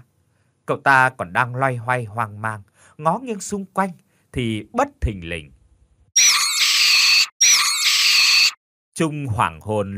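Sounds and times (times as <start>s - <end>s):
speech: 0.7s - 5.6s, 9.0s - 9.9s
eerie piercing screams in a horror story: 6.2s - 8.6s.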